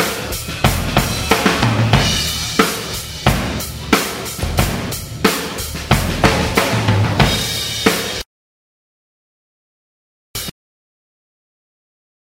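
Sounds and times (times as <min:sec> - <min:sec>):
drum outtakes: 0:00.0 - 0:08.2.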